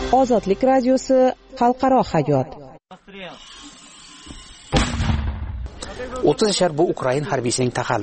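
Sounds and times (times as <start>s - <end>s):
speech: 0.2s - 3.5s, 5.8s - 8.0s
Italian-made mortar blast fired at Russian positions in Donbas: 4.7s - 6.1s.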